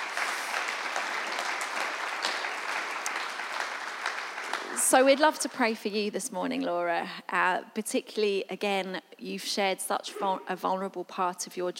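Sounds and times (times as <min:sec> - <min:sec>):
audience applause: 0:00.0 - 0:05.5
speech: 0:04.9 - 0:11.7.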